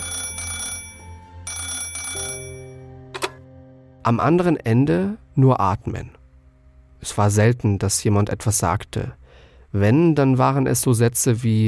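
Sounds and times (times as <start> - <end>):
old-style telephone bell ringing: 0.0 - 2.8
speech: 2.2 - 2.6, 4.0 - 6.2, 7.0 - 11.6.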